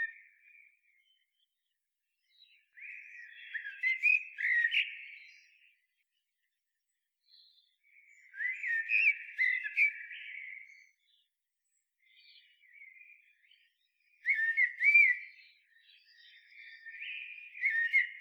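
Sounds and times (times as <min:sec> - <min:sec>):
common blackbird song: 0:02.2 - 0:06.0, 0:07.2 - 0:11.3, 0:12.0 - 0:18.2.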